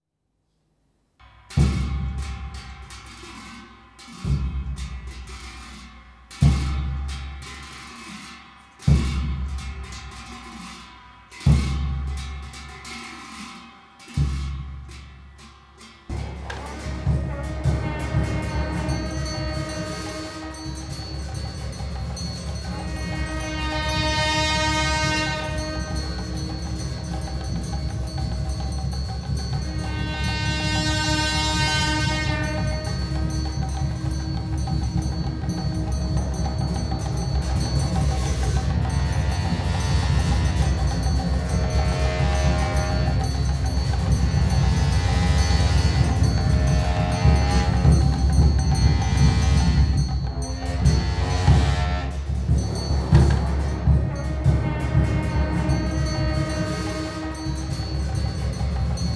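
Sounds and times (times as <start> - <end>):
cymbals: 1.2 - 59.1
big and small ceremonial horns blowing: 16.1 - 59.1.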